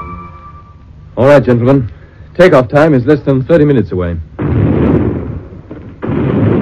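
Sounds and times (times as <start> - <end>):
speech: 1.4 - 4.3
distant explosions: 4.4 - 6.5.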